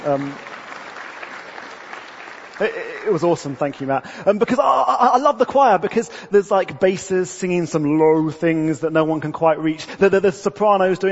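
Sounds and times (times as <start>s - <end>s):
speech: 0.0s - 0.5s, 2.6s - 11.1s
audience applause: 0.0s - 4.0s.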